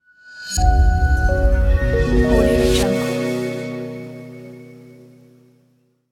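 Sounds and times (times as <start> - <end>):
bright logo jingle: 0.6 - 5.5.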